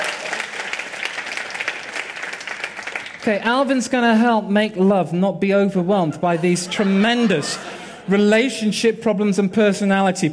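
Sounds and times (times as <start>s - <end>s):
audience applause: 0.0s - 3.3s
speech: 3.2s - 10.3s
laughter: 6.2s - 8.6s.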